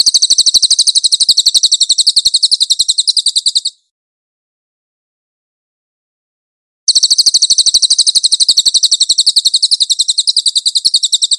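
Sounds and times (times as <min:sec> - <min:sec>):
cililin chattering trills: 0:00.0 - 0:03.8, 0:06.9 - 0:11.3.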